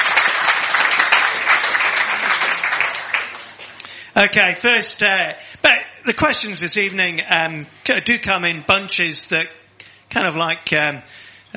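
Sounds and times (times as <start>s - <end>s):
audience applause: 0.0s - 3.8s
speech: 4.2s - 11.5s.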